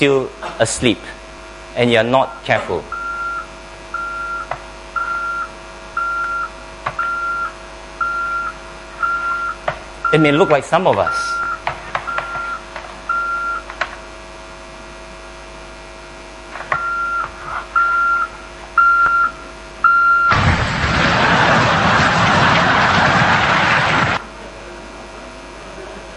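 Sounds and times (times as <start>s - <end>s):
speech: 0.0s - 1.2s, 1.8s - 3.0s, 10.1s - 11.4s
low hum: 1.1s - 25.3s
truck reversing beeper: 2.2s - 13.6s, 16.8s - 20.6s
loud sustained rushing noise: 20.3s - 24.2s.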